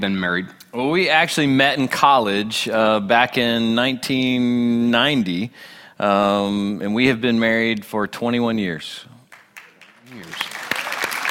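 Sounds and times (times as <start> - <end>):
speech: 0.0 - 9.1
audience clapping: 9.2 - 11.3.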